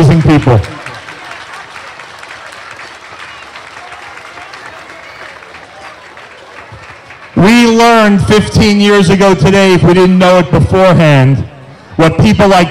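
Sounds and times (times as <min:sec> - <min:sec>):
audience applause: 0:00.0 - 0:08.2
speech: 0:00.2 - 0:00.8, 0:08.0 - 0:12.6.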